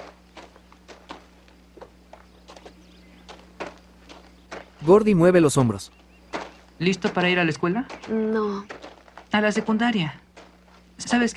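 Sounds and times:
footsteps of people walking: 0.0 - 5.2, 6.3 - 11.3
speech: 4.8 - 6.0, 6.8 - 10.2, 11.0 - 11.3.

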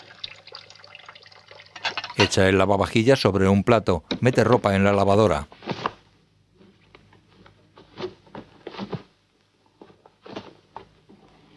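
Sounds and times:
water running from a tap into a kitchen sink: 0.0 - 2.4
speech: 2.2 - 5.6.

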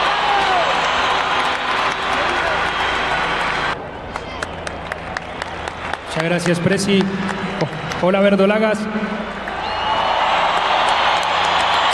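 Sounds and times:
audience applause: 0.0 - 8.2, 9.3 - 11.9
speech: 6.2 - 9.1.

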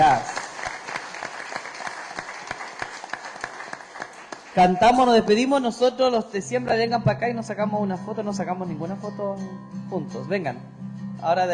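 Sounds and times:
audience applause: 0.0 - 5.2
speech: 4.6 - 11.5.

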